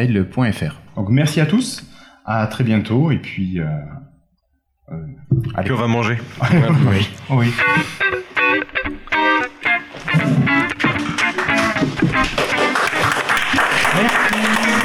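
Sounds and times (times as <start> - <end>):
speech: 0.0 - 4.0, 4.9 - 9.0
laughter: 5.5 - 8.6, 10.1 - 14.8
small group applauding: 8.1 - 14.8.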